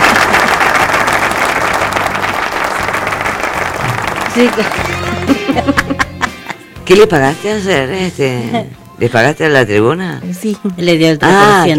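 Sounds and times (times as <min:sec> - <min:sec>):
applause: 0:00.0 - 0:05.6
laughter: 0:03.8 - 0:06.6
speech: 0:04.4 - 0:06.1, 0:06.9 - 0:11.7.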